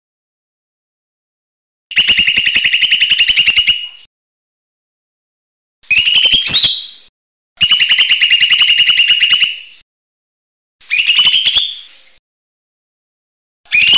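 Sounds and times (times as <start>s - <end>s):
bird chirping: 1.9s - 4.0s, 5.9s - 9.7s, 10.9s - 12.0s.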